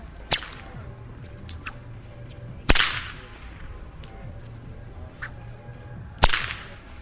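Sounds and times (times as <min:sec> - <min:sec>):
long blue whip cracking in a plaza: 0:00.0 - 0:05.6, 0:06.2 - 0:06.9
low murmur: 0:00.0 - 0:06.9.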